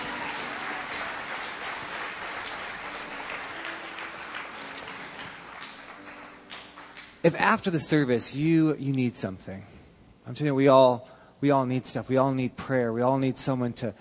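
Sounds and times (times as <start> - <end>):
round of applause: 0.0 - 7.2
speech: 7.2 - 13.9.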